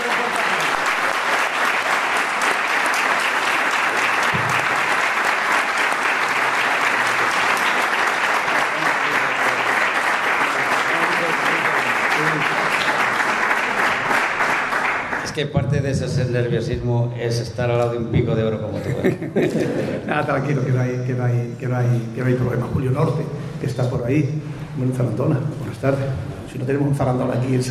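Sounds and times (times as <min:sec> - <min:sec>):
loud audience applause: 0:00.0 - 0:15.4
speech: 0:15.4 - 0:27.6
laughter: 0:18.7 - 0:20.2.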